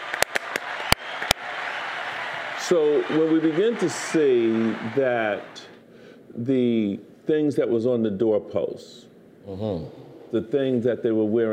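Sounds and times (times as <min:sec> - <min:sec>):
hand clapping: 0:00.0 - 0:05.6
speech: 0:02.7 - 0:05.7, 0:06.3 - 0:11.5.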